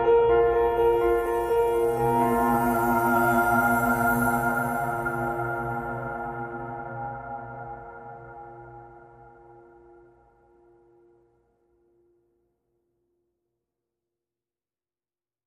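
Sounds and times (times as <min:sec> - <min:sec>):
music mix without piano: 0:00.0 - 0:10.9.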